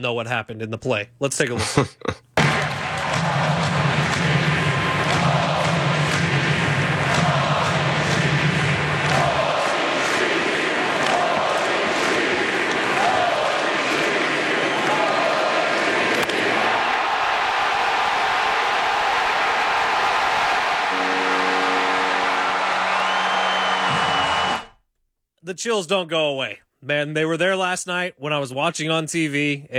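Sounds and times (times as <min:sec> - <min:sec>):
speech: 0:00.0 - 0:02.2, 0:25.5 - 0:29.7
laughter: 0:01.3 - 0:02.4
ballpark crowd roaring before first pitch: 0:02.4 - 0:24.7.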